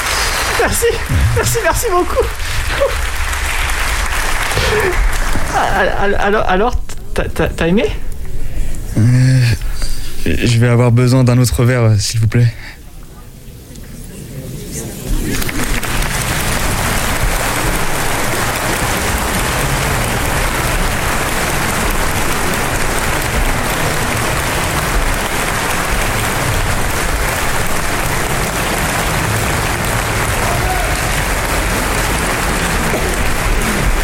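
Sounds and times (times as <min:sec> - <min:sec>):
big audience applause and ovation: 0:00.0 - 0:06.5, 0:15.0 - 0:34.0
speech: 0:00.6 - 0:03.2, 0:04.6 - 0:08.1, 0:09.0 - 0:09.4, 0:10.3 - 0:12.8.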